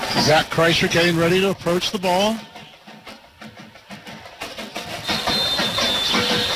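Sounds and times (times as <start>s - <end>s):
speech: 0.2s - 2.5s
referee's whistle: 4.9s - 6.5s.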